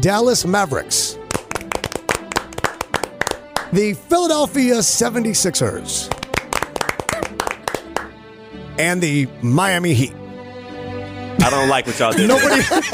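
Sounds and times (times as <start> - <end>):
speech: 0.0 - 1.2, 3.7 - 6.2, 8.8 - 10.2, 11.4 - 12.9
hand clapping: 1.2 - 3.8, 6.0 - 8.2
laughter: 11.4 - 12.9.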